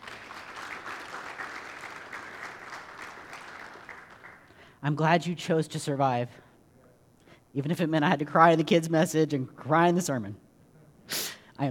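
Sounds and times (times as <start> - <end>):
audience applause: 0.0 - 4.5
speech: 4.8 - 6.4, 7.6 - 10.4, 11.1 - 11.6.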